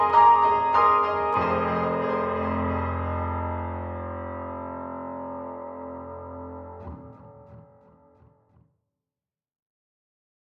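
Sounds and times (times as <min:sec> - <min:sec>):
grand piano with chorus and echo: 0:00.0 - 0:08.3.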